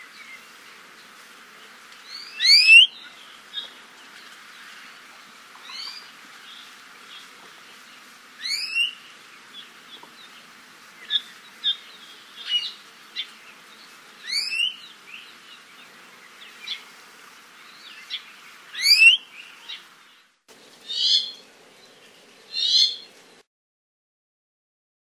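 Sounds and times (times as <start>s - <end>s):
faint other birds: 0.0s - 23.4s
ʻIʻiwi calls: 2.1s - 2.9s, 8.4s - 9.0s, 14.2s - 14.8s, 18.8s - 19.2s.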